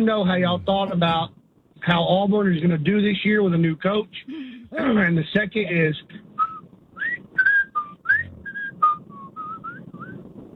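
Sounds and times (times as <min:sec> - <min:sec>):
speech: 0:00.0 - 0:06.2
low rumbling background: 0:00.0 - 0:10.5
caller whistling a TV theme tune: 0:06.4 - 0:10.1.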